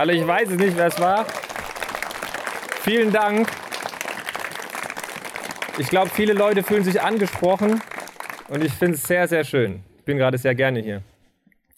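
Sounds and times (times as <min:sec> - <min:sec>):
speech: 0:00.0 - 0:01.4, 0:02.8 - 0:03.6, 0:05.8 - 0:07.9, 0:08.5 - 0:11.1
audience applause: 0:00.0 - 0:09.3.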